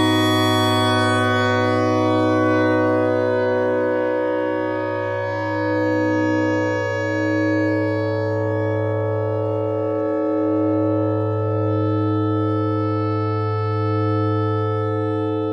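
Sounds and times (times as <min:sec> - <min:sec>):
clarinet thread noise: 0:00.0 - 0:04.8
clarinet notes: 0:00.0 - 0:15.4.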